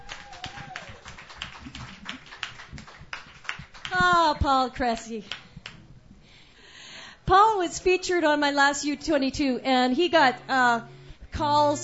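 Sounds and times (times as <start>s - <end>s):
light scattered clapping from an open mic audience: 0.0s - 4.5s
speech: 3.9s - 5.4s, 7.3s - 11.8s.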